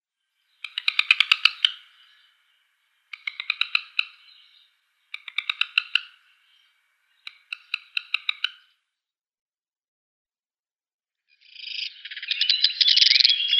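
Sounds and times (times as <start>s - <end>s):
black redstart calling: 0.4s - 8.8s, 11.4s - 13.5s.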